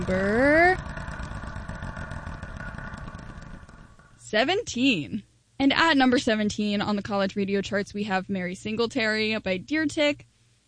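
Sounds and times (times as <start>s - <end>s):
speech: 0.0s - 0.9s, 4.3s - 10.3s
spinning wheel ticking for a radio chart segment: 0.0s - 4.5s.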